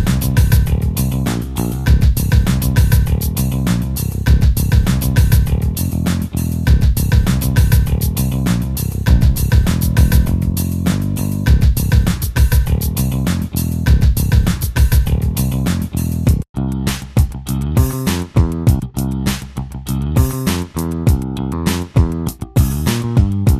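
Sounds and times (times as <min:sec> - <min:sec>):
virtual bassist playing busy rock bass line: 0:00.0 - 0:23.5.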